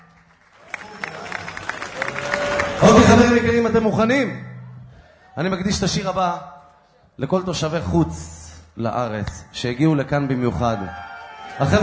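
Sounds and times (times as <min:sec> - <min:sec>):
audience applause at a live concert: 0:00.0 - 0:03.4
speech: 0:02.8 - 0:04.5, 0:05.4 - 0:06.5, 0:07.2 - 0:11.8.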